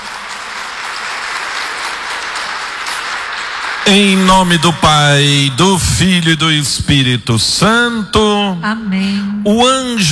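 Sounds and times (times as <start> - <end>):
crowd applause: 0.0 - 6.6
speech: 3.9 - 10.0.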